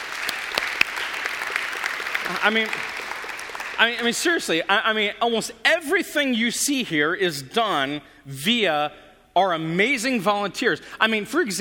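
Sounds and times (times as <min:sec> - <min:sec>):
audience applause: 0:00.0 - 0:04.2
speech: 0:02.3 - 0:03.0, 0:03.8 - 0:11.5.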